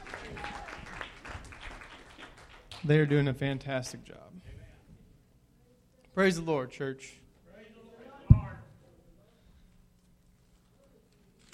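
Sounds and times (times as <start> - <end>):
audience applause: 0.0 - 2.9
speech: 2.8 - 4.5, 6.2 - 7.2.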